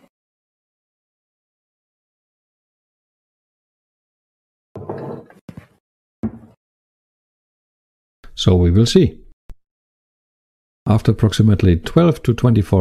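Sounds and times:
container being put into a cupboard: 6.2s - 6.6s
speech: 8.4s - 9.2s, 10.9s - 12.7s.

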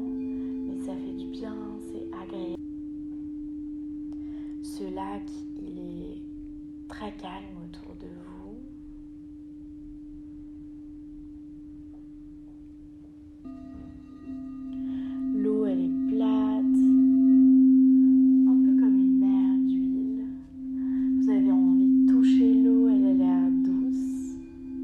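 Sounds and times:
chimes: 0.0s - 5.4s, 13.4s - 24.8s
crystal singing bowls: 0.0s - 24.8s.

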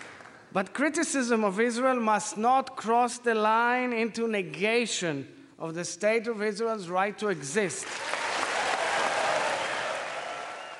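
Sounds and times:
long applause: 0.0s - 0.5s, 7.8s - 10.7s
speech: 0.5s - 8.2s.

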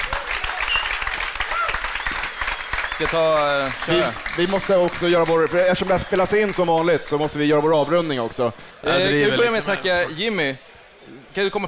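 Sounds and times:
audience applause: 0.0s - 6.8s
speech: 3.0s - 10.7s, 11.3s - 11.6s.

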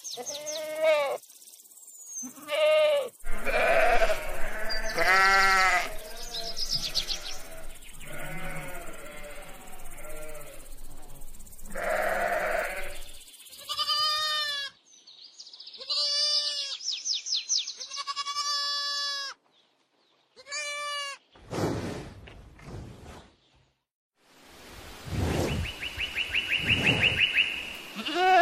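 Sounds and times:
goats and sheep bleating on a farm: 0.2s - 1.2s, 2.2s - 10.8s, 11.6s - 14.8s, 15.8s - 16.8s, 17.8s - 19.4s, 20.4s - 21.2s, 27.9s - 28.4s
steady hiss: 3.2s - 13.4s, 24.2s - 28.4s.

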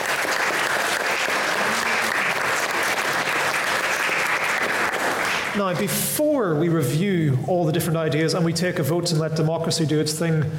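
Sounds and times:
audience applause: 0.0s - 5.8s
speech: 5.6s - 10.5s.

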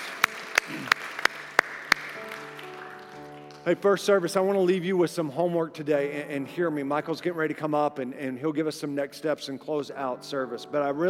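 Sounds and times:
audience applause: 0.0s - 3.7s
speech: 0.7s - 1.0s, 3.6s - 11.0s.

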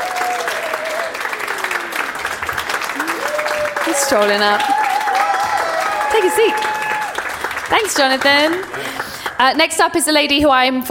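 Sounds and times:
whoops and cheers: 0.0s - 2.2s, 2.8s - 7.3s
audience applause: 0.0s - 9.9s
speech: 4.0s - 4.8s, 6.1s - 6.8s, 7.7s - 10.8s.

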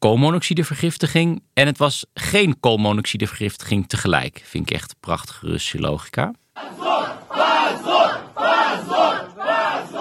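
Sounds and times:
speech: 0.0s - 9.2s
protesters chanting shame in a courthouse: 6.6s - 9.9s.

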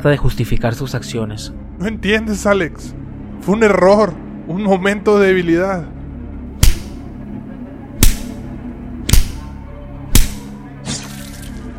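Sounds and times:
speech: 0.0s - 6.0s
rain of blows, punches: 6.6s - 7.0s, 8.0s - 8.4s, 9.1s - 9.4s, 10.1s - 10.5s.

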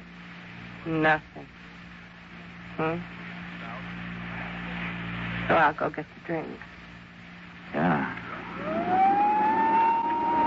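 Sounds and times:
speech: 0.8s - 1.6s, 2.8s - 3.2s, 5.5s - 6.7s
vacuum cleaner running: 8.3s - 10.4s.

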